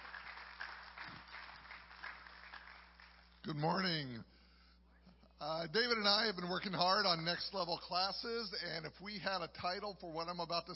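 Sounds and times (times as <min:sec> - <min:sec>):
round of applause: 0:00.0 - 0:03.4
speech: 0:03.4 - 0:04.4, 0:05.4 - 0:10.7.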